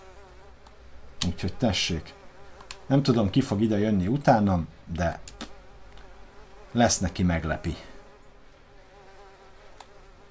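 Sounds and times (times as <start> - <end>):
flies buzzing: 0.0 - 10.2
speech: 1.4 - 2.2, 2.9 - 5.4, 6.7 - 7.9
sharp click: 5.2 - 6.1.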